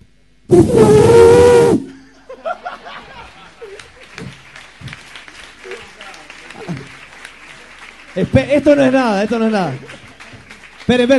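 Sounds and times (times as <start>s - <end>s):
speech: 0.5s - 1.1s, 8.2s - 9.9s, 10.9s - 11.1s
person imitating an elephant's trumpet: 0.5s - 2.0s
laughter: 2.0s - 4.3s.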